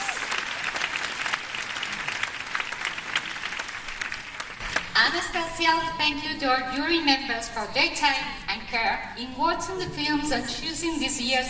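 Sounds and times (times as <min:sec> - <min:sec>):
audience applause: 0:00.0 - 0:04.9
speech: 0:05.1 - 0:11.4.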